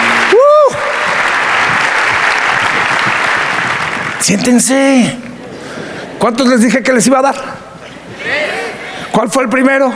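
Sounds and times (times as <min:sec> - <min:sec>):
audience applause: 0:00.0 - 0:04.9, 0:08.1 - 0:09.1
speech: 0:04.3 - 0:05.3, 0:06.2 - 0:07.6, 0:09.2 - 0:09.9.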